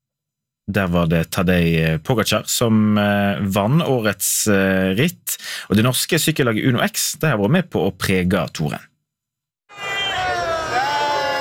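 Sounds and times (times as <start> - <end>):
speech: 0.7 - 8.9
crowd cheering for Uno X at the Arc de Triomphe in Paris: 9.7 - 11.3.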